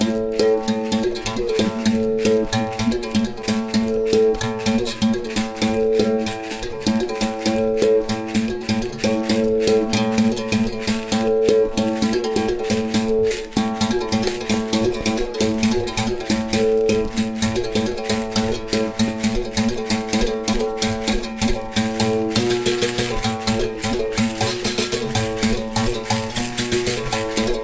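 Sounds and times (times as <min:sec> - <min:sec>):
berimbau: 0:00.0 - 0:27.6.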